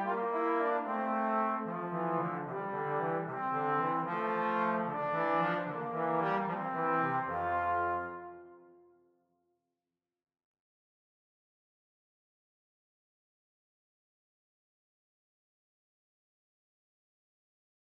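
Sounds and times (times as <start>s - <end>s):
trombone duet: 0.0s - 8.8s.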